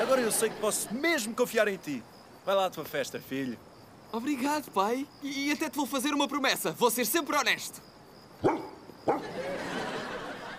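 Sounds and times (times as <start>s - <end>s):
laughter: 0.0s - 1.4s, 9.2s - 10.5s
speech: 0.1s - 9.8s
dog on a sofa barking in a sitcom scene: 8.4s - 9.3s.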